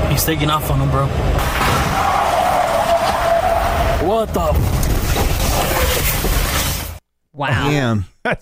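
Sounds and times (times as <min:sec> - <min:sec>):
speech: 0:00.2 - 0:01.8, 0:04.0 - 0:04.9, 0:07.4 - 0:08.4
truck crashing: 0:01.3 - 0:07.0.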